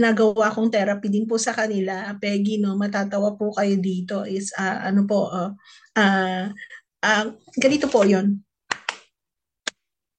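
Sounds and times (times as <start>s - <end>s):
speech: 0.0s - 8.4s
hands clapping a simple beat: 8.7s - 9.8s.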